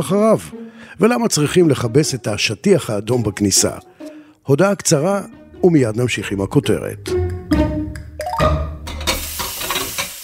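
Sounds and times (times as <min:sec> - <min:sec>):
speech: 0:00.0 - 0:07.2
dishes clinking while being washed: 0:08.8 - 0:10.2.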